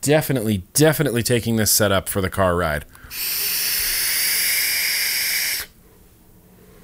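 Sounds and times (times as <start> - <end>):
speech: 0.0 - 3.6
vape tank hissing during inhale: 3.1 - 5.8.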